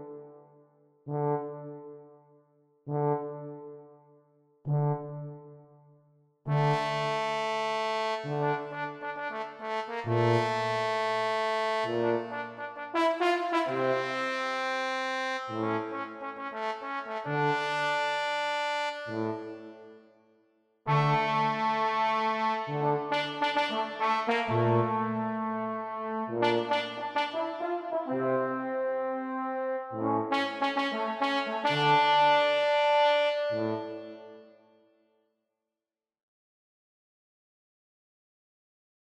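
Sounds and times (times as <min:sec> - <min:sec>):
tuba: 0:00.0 - 0:02.2, 0:02.9 - 0:04.0, 0:04.7 - 0:05.6, 0:06.5 - 0:20.0, 0:20.9 - 0:34.6
trombone: 0:06.5 - 0:19.7, 0:20.9 - 0:34.4.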